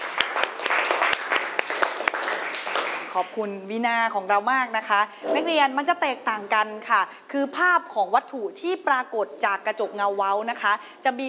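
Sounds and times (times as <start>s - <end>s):
applause by students: 0.0s - 3.1s
speech: 3.2s - 11.2s.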